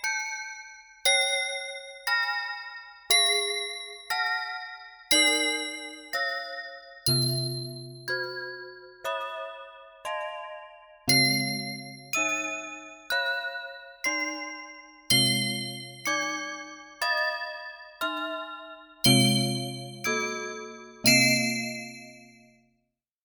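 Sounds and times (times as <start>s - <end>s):
bells: 1.1s - 22.2s.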